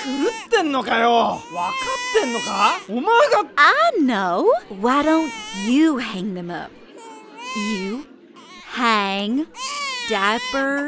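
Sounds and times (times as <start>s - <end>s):
baby screaming and crying: 0.0s - 2.9s, 5.0s - 6.0s, 7.0s - 8.8s, 9.5s - 10.8s
speech: 0.0s - 6.8s, 7.6s - 8.1s, 8.7s - 10.8s.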